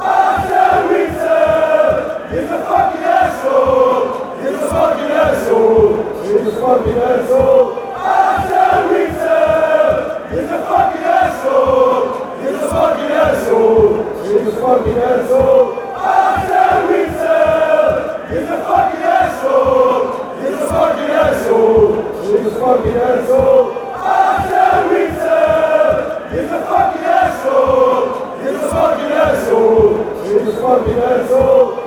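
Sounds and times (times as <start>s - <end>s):
football crowd chanting: 0.0s - 31.8s.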